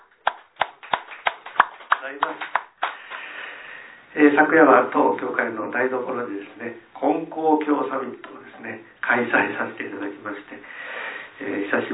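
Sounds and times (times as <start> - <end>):
group clapping in unison in celebration: 0.0 - 3.4
speech: 2.0 - 2.6, 4.1 - 11.9.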